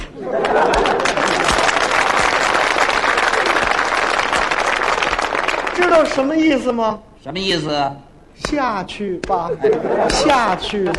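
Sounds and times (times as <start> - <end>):
laughter: 0.0 - 2.5, 3.2 - 3.8, 9.3 - 10.9
audience applause: 0.3 - 6.2
speech: 6.0 - 10.9.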